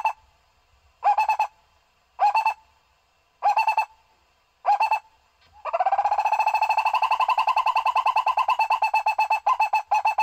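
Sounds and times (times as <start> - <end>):
owl hooting: 0.0 - 0.2, 1.0 - 1.6, 2.2 - 2.7, 3.4 - 4.0, 4.6 - 10.2.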